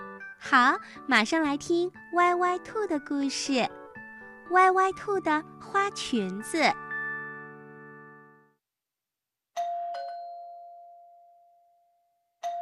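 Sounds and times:
speech: 0.4s - 3.8s, 4.5s - 6.8s
doorbell chiming: 9.6s - 12.6s.

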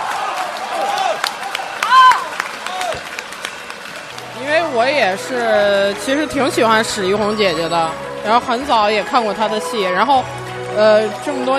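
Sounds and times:
theatre audience clapping: 0.0s - 6.0s
theatre audience shouting and cheering: 0.0s - 11.5s
speech: 4.8s - 11.5s.

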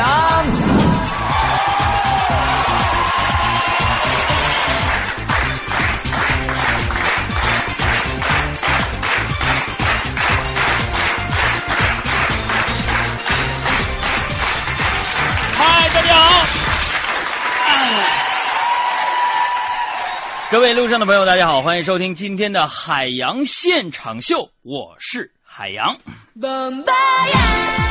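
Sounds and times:
crowd cheering and whooping: 0.0s - 21.9s
steady rhythmic clapping in time: 1.0s - 18.9s
speech: 20.6s - 27.8s.

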